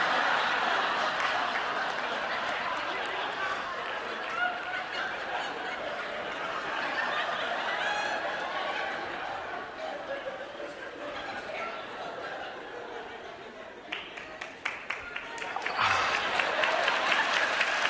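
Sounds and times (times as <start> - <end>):
audience applause: 0.0 - 8.8, 13.9 - 17.8
laughter: 0.0 - 17.8.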